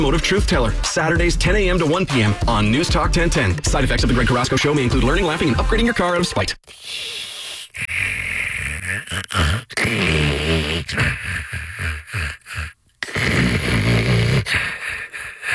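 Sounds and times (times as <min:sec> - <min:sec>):
speech: 0:00.0 - 0:08.2, 0:09.0 - 0:13.3
person snoring: 0:06.6 - 0:15.5.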